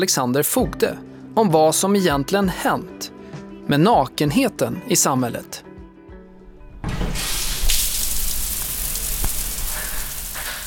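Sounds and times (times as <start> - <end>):
speech: 0.0 - 5.7
indoor swimming pool water: 7.5 - 10.6.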